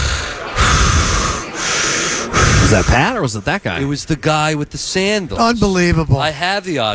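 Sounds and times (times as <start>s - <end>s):
man breathing heavily close to the microphone: 0.0s - 3.2s
speech: 2.7s - 6.9s.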